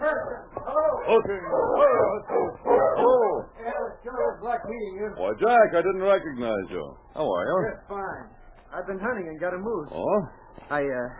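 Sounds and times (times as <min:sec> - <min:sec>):
sled dog team barking: 0:00.0 - 0:06.2
speech: 0:01.1 - 0:02.6, 0:04.4 - 0:11.1.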